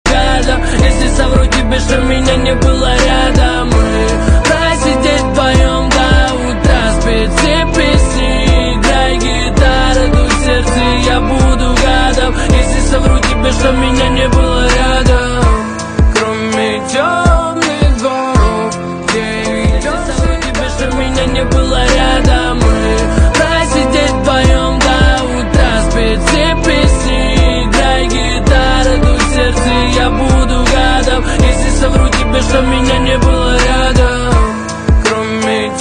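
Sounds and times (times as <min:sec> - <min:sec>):
guitar: 0:00.1 - 0:35.7.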